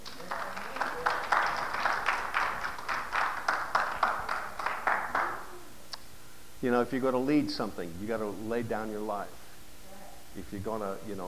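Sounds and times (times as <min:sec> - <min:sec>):
audience applause: 0:00.0 - 0:05.6
speech: 0:06.6 - 0:09.4, 0:10.4 - 0:11.2.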